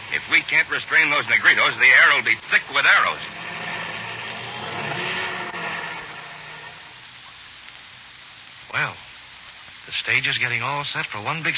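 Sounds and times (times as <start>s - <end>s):
speech: 0.1s - 3.4s, 9.9s - 11.5s
boat motor starting up: 0.9s - 7.2s.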